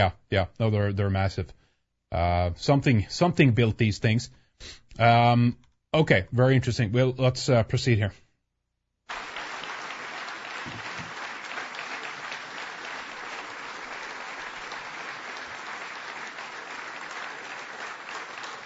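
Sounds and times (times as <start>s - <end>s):
speech: 0.0s - 8.2s
long applause: 9.1s - 18.6s.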